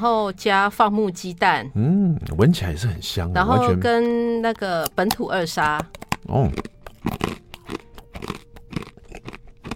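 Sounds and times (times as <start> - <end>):
speech: 0.0 - 8.3
crunchy gluten-free rice cracker with almonds and pumpkin seeds being bitten: 5.8 - 9.7.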